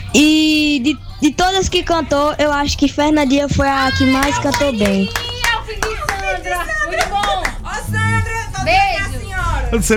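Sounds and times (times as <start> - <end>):
speech: 0.1 - 5.8, 7.7 - 9.9
overlapping voices and cheering: 3.3 - 9.3
scattered audience claps: 4.1 - 7.7.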